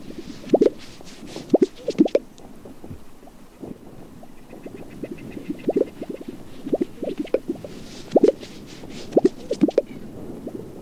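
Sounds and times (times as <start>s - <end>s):
soft wind-like hiss: 0.0s - 10.8s
Gunnison sage grouse display bubbling pops: 0.4s - 4.4s, 5.3s - 9.9s.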